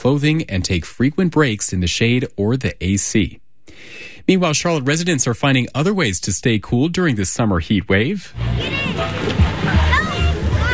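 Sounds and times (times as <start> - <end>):
speech: 0.0 - 9.8
water splashing in a swimming pool: 8.3 - 10.7
children's voices and chatter at a swimming pool: 8.4 - 10.7.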